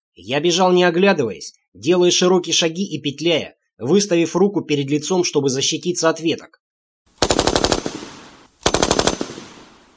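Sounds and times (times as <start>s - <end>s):
speech: 0.2s - 6.6s
heavy machine gun bursts: 7.2s - 9.8s.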